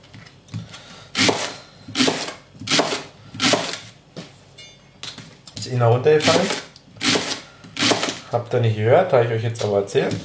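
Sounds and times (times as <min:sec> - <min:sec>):
knife cutting rings: 0:01.2 - 0:03.9, 0:06.2 - 0:08.2
speech: 0:05.6 - 0:06.6, 0:08.3 - 0:10.2.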